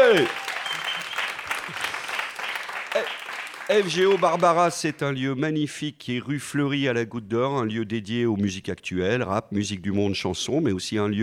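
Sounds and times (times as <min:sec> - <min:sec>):
enthusiastic crowd applause: 0:00.0 - 0:04.6
scattered louder claps: 0:00.0 - 0:04.8
speech: 0:00.1 - 0:00.4, 0:03.0 - 0:11.2.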